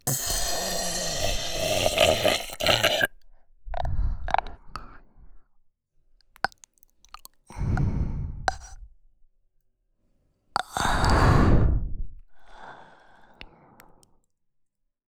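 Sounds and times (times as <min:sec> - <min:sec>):
burp: 0:00.0 - 0:03.1
sleeping breathing: 0:00.0 - 0:03.1, 0:07.5 - 0:08.8, 0:10.6 - 0:13.6.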